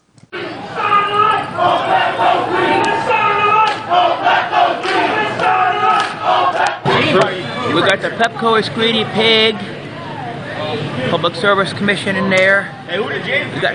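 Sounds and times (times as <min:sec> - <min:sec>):
protest crowd chanting and shouting: 0:00.3 - 0:08.2
speech: 0:07.1 - 0:09.8, 0:10.7 - 0:13.7.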